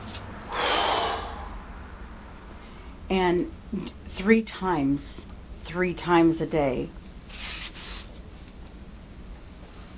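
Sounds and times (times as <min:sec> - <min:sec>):
deep breath in during a guided relaxation exercise: 0:00.5 - 0:01.6
speech: 0:03.1 - 0:07.5.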